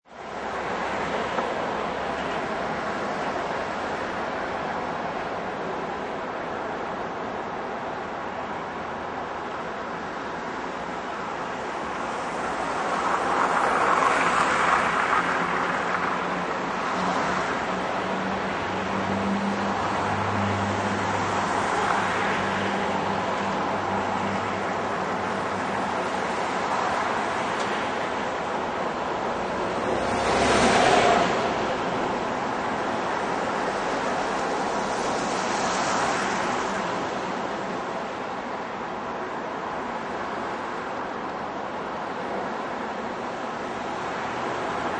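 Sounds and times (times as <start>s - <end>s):
city traffic on traffic bridge: 0.0s - 44.9s.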